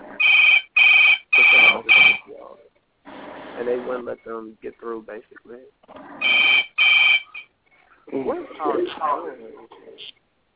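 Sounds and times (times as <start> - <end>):
telephone ringing: 0.2 - 2.2, 6.2 - 7.5
speech: 3.6 - 6.6, 8.1 - 10.2.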